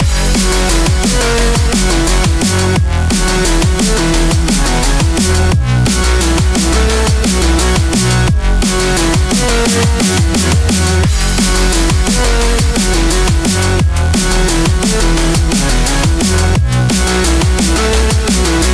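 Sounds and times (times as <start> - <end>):
music loop: 0.0 - 18.7.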